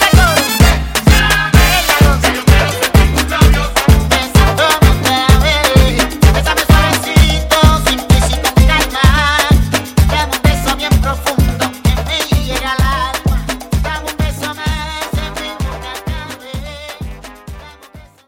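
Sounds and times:
afrobeat drum: 0.0s - 18.2s.

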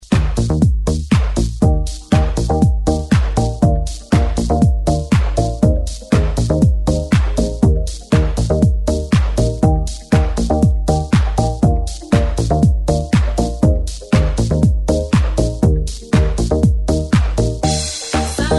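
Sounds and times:
90s dance music intro at 120 BPM: 0.0s - 18.5s.

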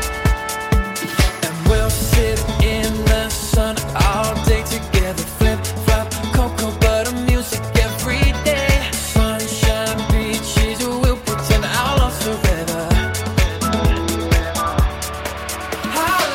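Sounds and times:
Christmas music track at 128 BPM: 0.0s - 16.2s.

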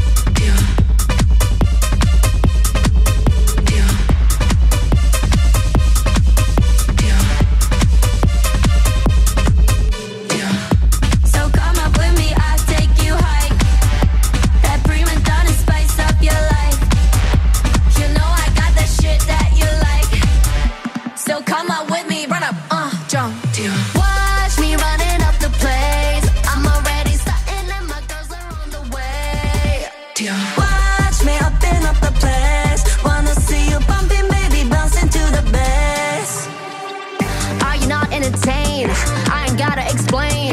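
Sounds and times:
Top 40 pop music: 0.0s - 40.5s.

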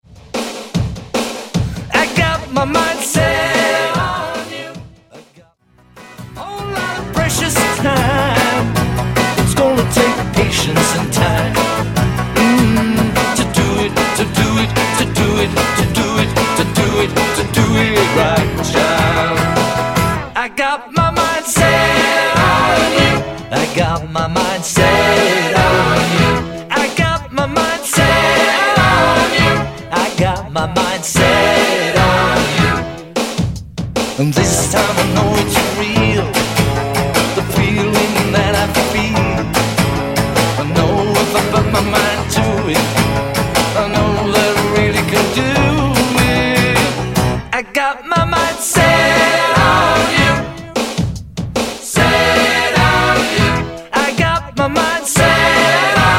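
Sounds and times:
80s dance music: 0.3s - 56.1s.

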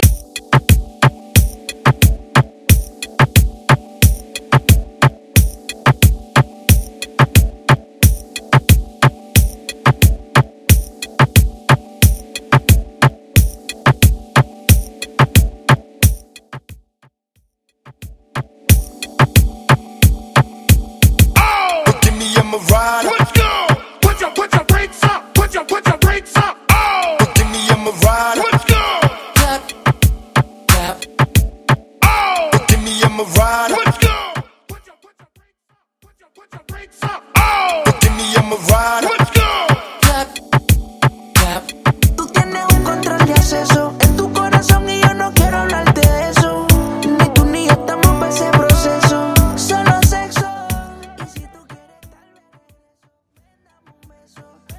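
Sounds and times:
Top40 urban Latin pop music: 0.0s - 16.7s, 17.9s - 54.7s.

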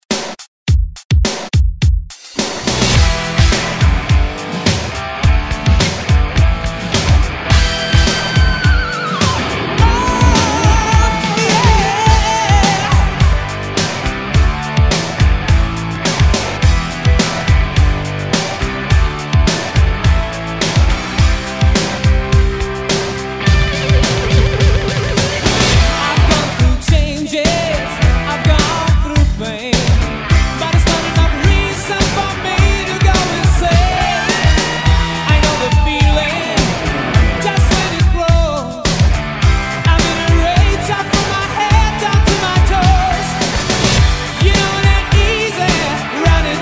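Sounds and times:
rock drums at 105 bpm: 0.0s - 46.6s.

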